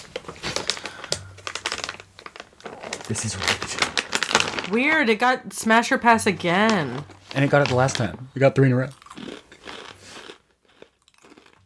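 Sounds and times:
cheese crisp snack being crunched: 0.4s - 4.7s, 8.9s - 11.6s
speech: 3.1s - 4.0s, 4.7s - 9.0s.

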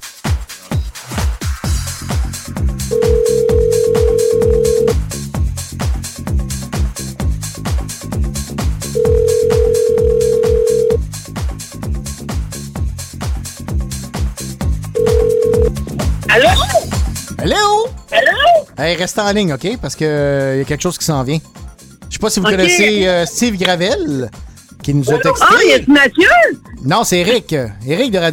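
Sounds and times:
rhythmic music: 0.0s - 28.3s
telephone ringback tone on an outgoing call: 2.9s - 5.0s, 9.0s - 11.0s, 15.0s - 15.8s
speech: 18.8s - 21.6s, 22.2s - 28.3s.

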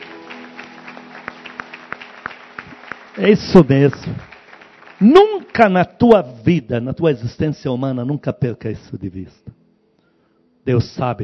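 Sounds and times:
audience applause: 0.0s - 6.2s
speech: 3.2s - 4.3s, 5.0s - 9.6s, 10.6s - 11.2s.

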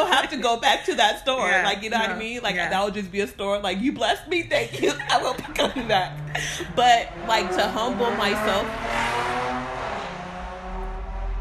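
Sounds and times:
laughter: 0.0s - 2.4s, 3.9s - 7.9s
speech: 0.3s - 9.1s
motorcycle: 5.0s - 11.4s.

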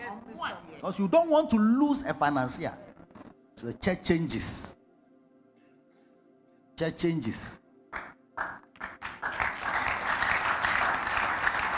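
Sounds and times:
speech: 0.3s - 2.9s, 3.6s - 4.8s, 6.8s - 8.0s
audience clapping: 7.9s - 11.7s.

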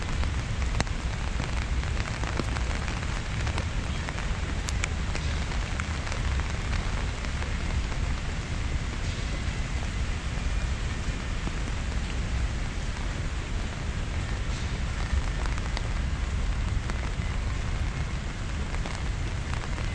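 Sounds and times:
rain falling in Central Park, Manhattan, New York: 0.0s - 19.9s.

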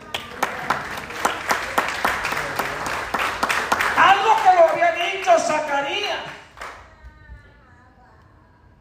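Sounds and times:
audience applause: 0.0s - 6.8s.

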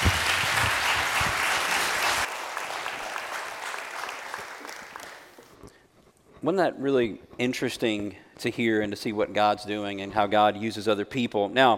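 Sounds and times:
audience applause: 0.0s - 5.5s
speech: 6.4s - 11.7s.

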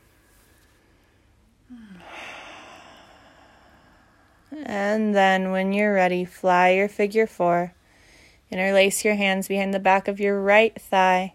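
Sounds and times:
slow deep breath during yoga practice: 0.0s - 4.6s, 7.8s - 8.5s
speech: 4.5s - 7.8s, 8.5s - 11.3s.

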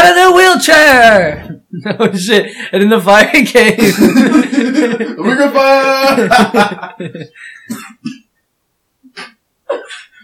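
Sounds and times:
speech: 0.1s - 8.2s
laughter: 1.3s - 2.5s, 3.8s - 7.6s
person coughing after choking on saliva: 7.7s - 8.3s, 9.1s - 10.2s.

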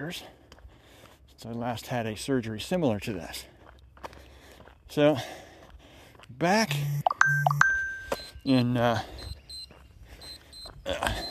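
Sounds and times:
speech: 0.0s - 0.4s, 1.4s - 3.5s, 4.9s - 5.4s, 6.3s - 7.7s, 8.4s - 9.2s
phone notification pings: 6.8s - 8.4s.

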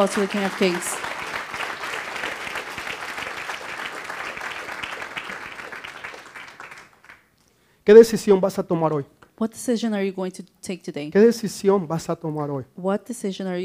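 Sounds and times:
speech: 0.0s - 1.1s, 7.9s - 13.6s
audience applauding: 0.0s - 7.3s.

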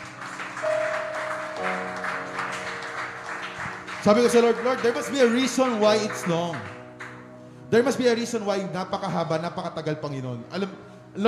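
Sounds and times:
congregation clapping hands during a church service: 0.0s - 7.4s
speech: 4.0s - 6.8s, 7.7s - 11.2s.

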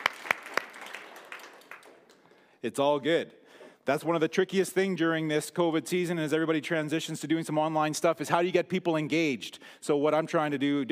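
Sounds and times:
audience clapping: 0.0s - 2.5s
speech: 2.6s - 10.9s.

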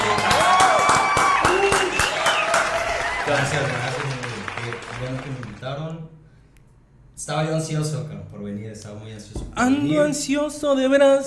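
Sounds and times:
applause: 0.0s - 5.8s
speech: 3.3s - 4.0s, 7.2s - 11.2s.

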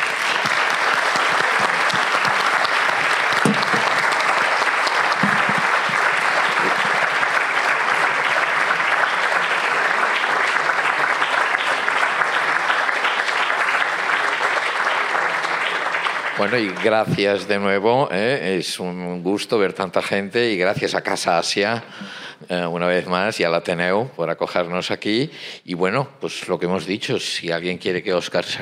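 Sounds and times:
sustained audience applause: 0.0s - 17.5s
speech: 16.4s - 28.6s.

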